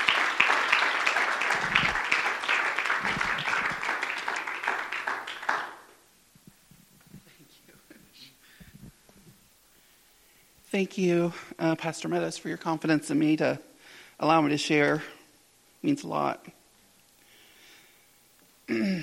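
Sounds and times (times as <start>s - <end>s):
audience applause welcoming a speaker at a church gathering: 0.0s - 6.0s
speech: 10.8s - 15.2s, 15.8s - 16.6s.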